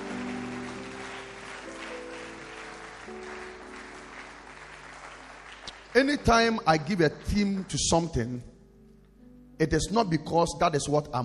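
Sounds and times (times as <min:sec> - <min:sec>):
audience clapping hands: 0:00.0 - 0:08.4
speech: 0:06.0 - 0:08.5, 0:09.6 - 0:11.2.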